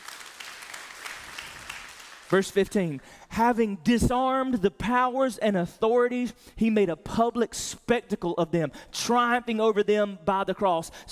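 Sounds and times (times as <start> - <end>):
audience clapping: 0.0 - 3.0
speech: 2.3 - 11.1.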